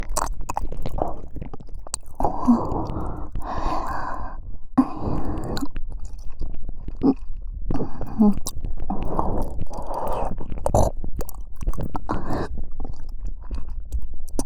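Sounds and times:
deep ear licking in the right ear: 0.0 - 4.2, 4.8 - 6.3, 7.9 - 12.6, 13.7 - 14.4.

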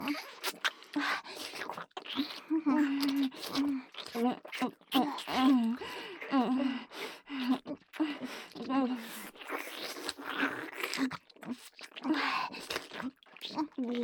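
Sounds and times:
oral sex sounds by two people at once: 0.0 - 14.0.

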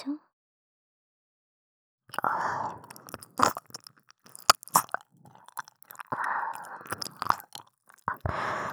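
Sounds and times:
ear licking: 2.1 - 8.7.

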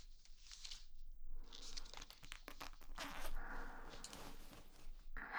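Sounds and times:
ear licking: 1.4 - 4.8.

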